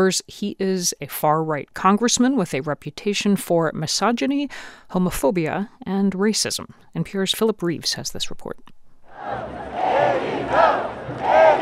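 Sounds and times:
speech: 0.0s - 9.7s
huge crowd chanting at a protest: 9.1s - 11.6s.

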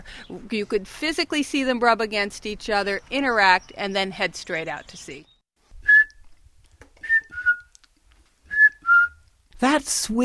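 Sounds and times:
speech: 0.2s - 5.3s, 9.6s - 10.2s
person whistling imitation of piping plover call: 5.8s - 6.2s, 7.0s - 7.7s, 8.5s - 9.2s.

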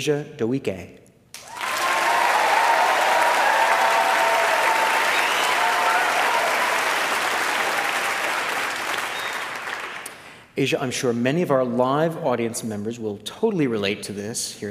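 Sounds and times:
speech: 0.0s - 1.0s, 10.6s - 14.7s
live audience applause welcoming a teenage violinist in Honolulu: 1.4s - 10.4s.

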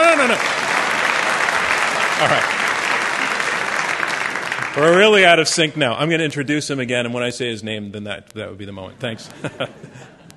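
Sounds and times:
audience applause at a debate: 0.0s - 5.6s
laughter: 2.0s - 2.8s, 8.9s - 10.3s
speech: 2.2s - 2.6s, 4.8s - 10.2s.

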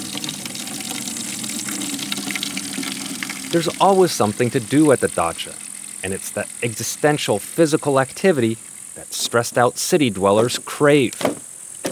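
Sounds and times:
water drawn from a well: 0.0s - 9.4s
speech: 3.5s - 11.4s.

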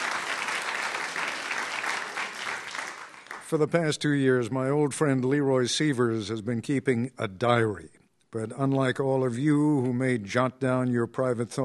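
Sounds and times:
live audience applause: 0.0s - 3.6s
speech: 3.5s - 11.6s.

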